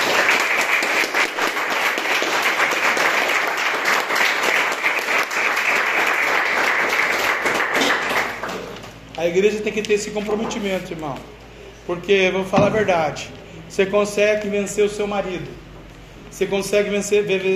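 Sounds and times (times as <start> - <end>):
audience applauding: 0.0 - 8.8
speech: 9.2 - 15.6, 16.4 - 17.5.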